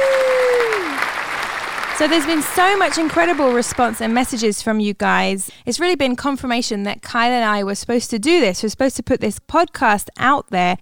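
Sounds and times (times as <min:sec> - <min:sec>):
applause: 0:00.0 - 0:04.5
speech: 0:02.0 - 0:10.7.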